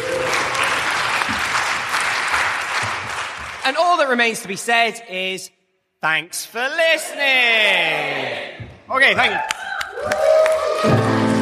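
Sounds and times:
audience clapping: 0:00.0 - 0:04.2, 0:09.1 - 0:11.3
speech: 0:03.7 - 0:11.0.

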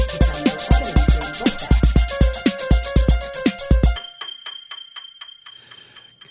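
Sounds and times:
podcast ident jingle: 0:00.0 - 0:03.4.

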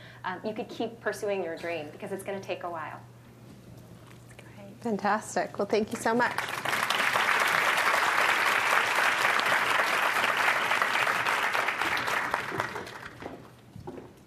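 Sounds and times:
speech: 0:00.2 - 0:03.2, 0:04.8 - 0:06.6
audience applause: 0:06.3 - 0:13.4.

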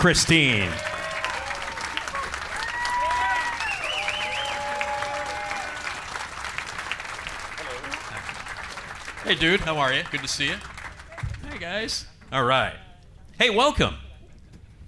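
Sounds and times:
speech: 0:00.0 - 0:00.9, 0:09.3 - 0:10.7, 0:11.6 - 0:12.8, 0:13.4 - 0:14.0
audience applause at a horror convention: 0:00.0 - 0:12.0
whistles: 0:03.0 - 0:04.9.

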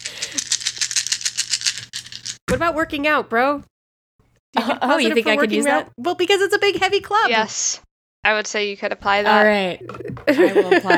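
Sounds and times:
dice being rolled: 0:00.0 - 0:02.4
speech: 0:02.5 - 0:03.7, 0:04.6 - 0:10.9
laughter: 0:09.8 - 0:10.9.

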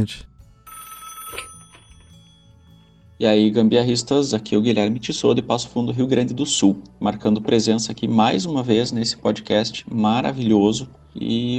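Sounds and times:
speech: 0:00.0 - 0:00.3, 0:03.2 - 0:11.5
telephone ringing: 0:00.6 - 0:03.0.

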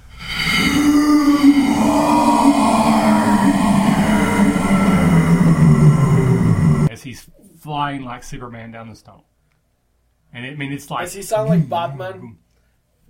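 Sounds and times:
voice imitating a snarling scream of rage: 0:00.0 - 0:06.9
speech: 0:07.9 - 0:09.3, 0:10.3 - 0:12.4.

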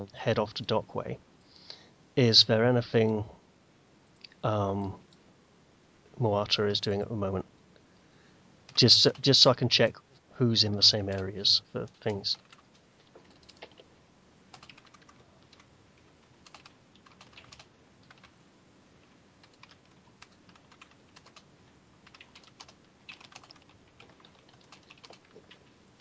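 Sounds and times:
speech: 0:00.0 - 0:01.3, 0:02.2 - 0:03.4, 0:04.4 - 0:05.0, 0:06.2 - 0:07.5, 0:08.8 - 0:12.4
typing on a computer keyboard: 0:11.9 - 0:13.9, 0:14.5 - 0:18.4, 0:19.4 - 0:26.0.

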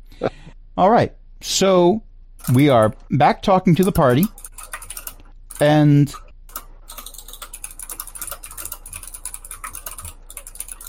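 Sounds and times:
speech: 0:00.2 - 0:04.4, 0:05.6 - 0:06.2
rapid typing on a computer keyboard: 0:02.4 - 0:03.0, 0:03.8 - 0:05.8, 0:06.5 - 0:10.8.

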